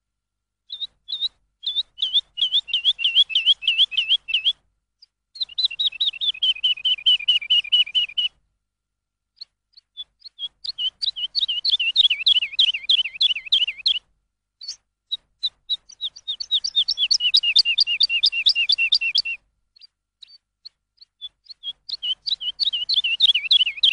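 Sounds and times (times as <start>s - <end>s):
lark song: 0.6s - 8.4s, 9.3s - 23.9s.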